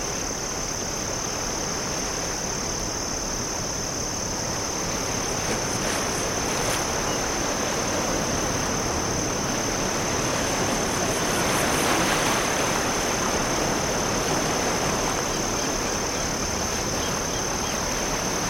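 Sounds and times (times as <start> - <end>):
crickets trilling: 0.0 - 18.4
surf rushing: 4.4 - 18.4.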